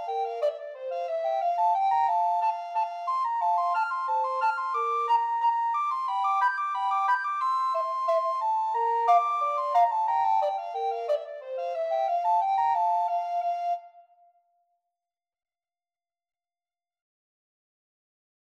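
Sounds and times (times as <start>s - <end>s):
recorder duet playing a hornpipe: 0.0s - 13.9s.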